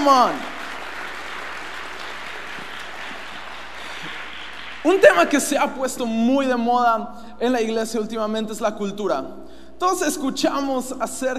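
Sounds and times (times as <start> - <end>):
speech: 0.0 - 0.5, 4.8 - 11.3
audience applause: 0.0 - 5.2.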